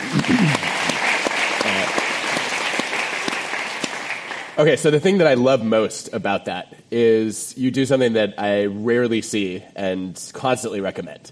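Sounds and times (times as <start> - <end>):
audience applause: 0.0 - 4.8
speech: 4.6 - 11.3.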